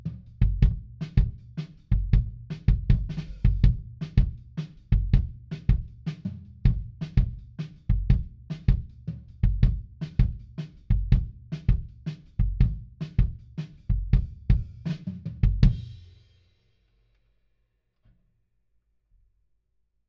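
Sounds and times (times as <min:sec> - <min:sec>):
kick drum at 160 BPM: 0:00.0 - 0:15.9.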